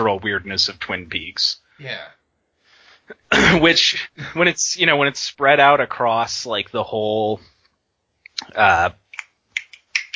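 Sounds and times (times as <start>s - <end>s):
speech: 0.1s - 2.2s, 3.1s - 7.5s, 8.4s - 9.0s
finger snaps: 9.1s - 10.1s.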